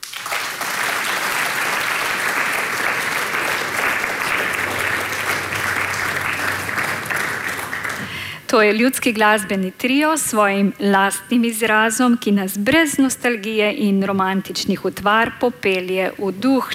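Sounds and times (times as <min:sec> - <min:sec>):
audience applause: 0:00.0 - 0:08.3
speech: 0:08.5 - 0:16.7.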